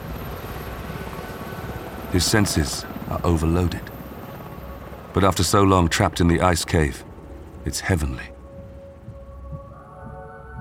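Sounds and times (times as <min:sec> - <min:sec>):
helicopter engine roar: 0:00.0 - 0:08.4
speech: 0:02.1 - 0:03.9, 0:05.2 - 0:08.3.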